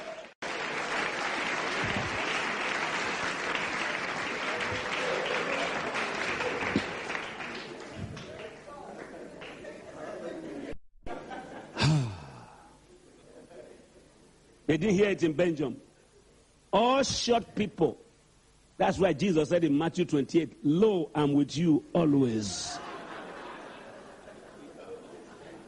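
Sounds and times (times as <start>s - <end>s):
audience clapping hands: 0.0s - 9.8s
laughter: 4.4s - 12.1s, 22.5s - 25.6s
speech: 14.7s - 15.9s, 16.7s - 18.0s, 18.8s - 22.8s.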